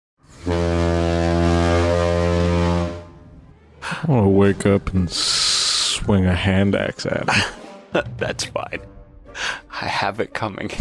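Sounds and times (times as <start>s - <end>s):
cartoon alarm foghorn-style blast: 0.2s - 3.5s
speech: 4.1s - 5.4s, 6.0s - 10.7s.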